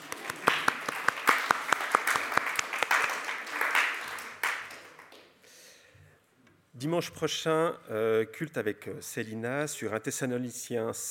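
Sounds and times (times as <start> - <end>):
audience applause: 0.0 - 5.2
speech: 6.8 - 11.0.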